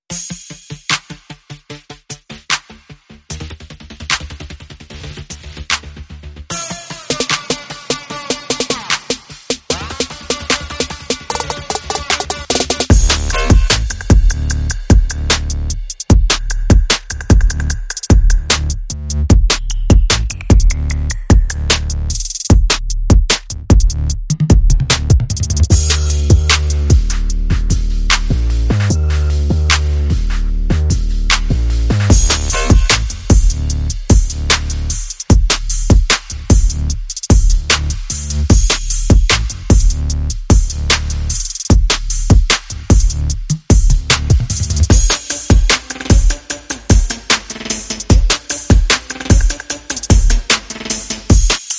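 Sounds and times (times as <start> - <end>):
drums: 0.0 - 1.5, 2.4 - 51.7
bass: 0.0 - 51.6.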